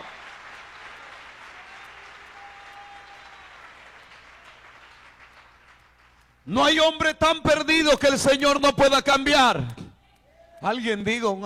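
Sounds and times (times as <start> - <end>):
audience applauding: 0.0 - 6.4
speech: 6.5 - 9.8, 10.6 - 11.4.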